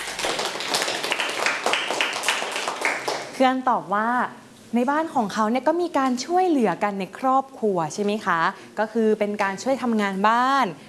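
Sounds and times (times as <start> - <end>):
children clapping for a classmate: 0.0 - 3.4
speech: 3.4 - 10.8.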